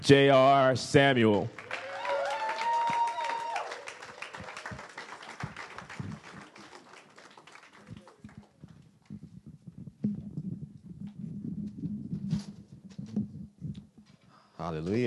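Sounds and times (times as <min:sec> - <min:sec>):
speech: 0:00.1 - 0:01.6, 0:14.8 - 0:15.0
audience applause: 0:01.4 - 0:08.6.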